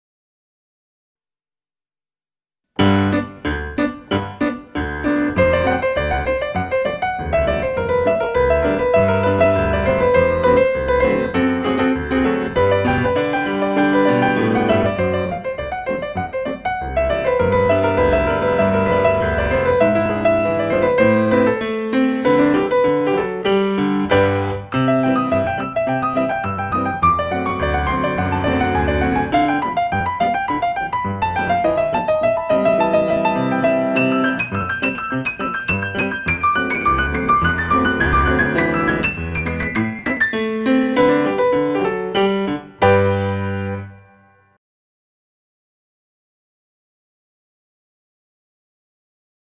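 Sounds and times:
ballet class music for tendu and glissé: 2.8s - 44.4s.

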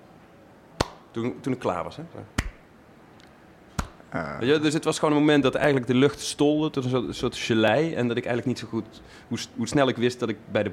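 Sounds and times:
slow hand claps imitating weak applause: 0.8s - 1.1s, 2.4s - 2.6s, 3.8s - 4.0s
speech: 1.2s - 2.5s, 4.1s - 10.7s.

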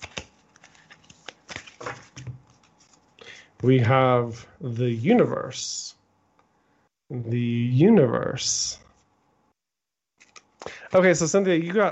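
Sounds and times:
playing cards handled as one is pulled from a deck: 0.0s - 2.2s
speech: 3.6s - 6.0s, 7.1s - 8.8s, 10.9s - 11.9s.

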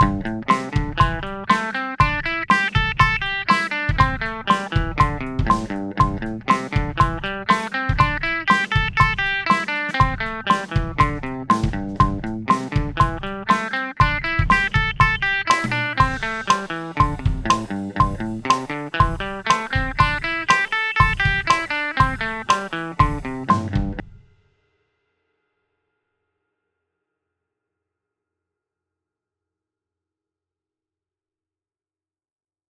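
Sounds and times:
guitar eighth notes in A minor at 120 bpm: 0.0s - 24.0s.

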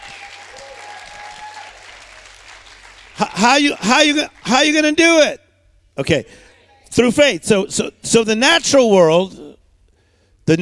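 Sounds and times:
faith-talk audience clapping: 0.0s - 5.0s
speech: 3.2s - 5.4s, 6.0s - 9.5s.

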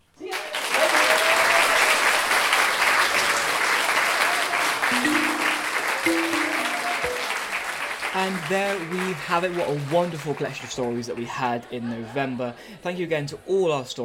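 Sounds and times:
audience applause: 0.2s - 11.0s
speech: 8.2s - 14.0s.

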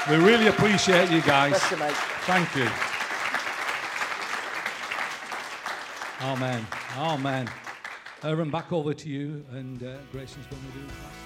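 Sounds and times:
speech: 0.0s - 2.9s, 6.2s - 7.6s, 8.2s - 11.2s
audience applause: 0.0s - 8.4s.

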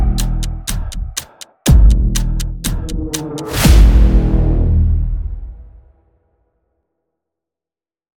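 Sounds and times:
music track in E minor: 0.0s - 4.6s.

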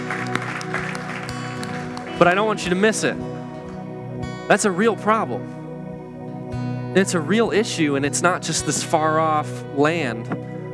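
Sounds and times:
audience applause: 0.0s - 2.9s
speech: 2.2s - 3.4s, 4.5s - 5.6s, 6.9s - 10.5s.

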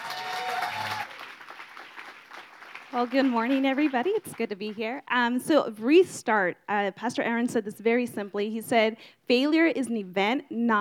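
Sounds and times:
audience applause: 0.0s - 4.8s
speech: 2.9s - 10.7s.

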